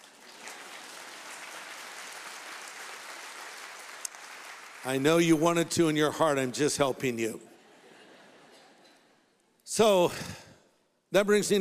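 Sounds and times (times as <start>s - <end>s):
audience applause: 0.0s - 5.3s
speech: 4.8s - 7.5s, 9.8s - 10.4s, 11.1s - 11.5s
laughter: 7.6s - 9.1s.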